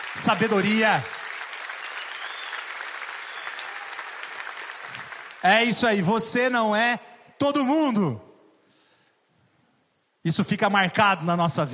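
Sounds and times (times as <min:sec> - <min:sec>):
audience applause: 0:00.0 - 0:05.8
speech: 0:00.2 - 0:01.2, 0:05.4 - 0:08.3, 0:10.2 - 0:11.7.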